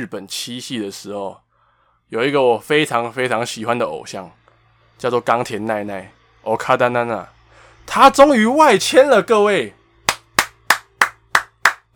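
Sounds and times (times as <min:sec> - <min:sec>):
speech: 0:00.0 - 0:01.4, 0:02.1 - 0:04.4, 0:05.0 - 0:09.8
single person clapping: 0:10.1 - 0:11.9.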